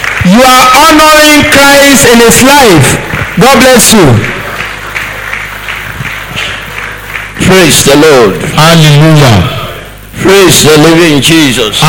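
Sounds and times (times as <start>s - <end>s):
church congregation clapping in a steady beat: 0.0s - 9.0s
low continuous hum: 0.0s - 11.8s
speech: 0.3s - 4.3s, 7.5s - 9.6s, 10.2s - 11.8s.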